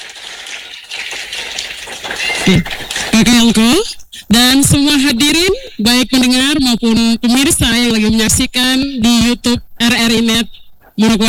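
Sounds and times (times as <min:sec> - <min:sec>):
audience applause: 0:00.0 - 0:03.5
speech: 0:02.2 - 0:11.2.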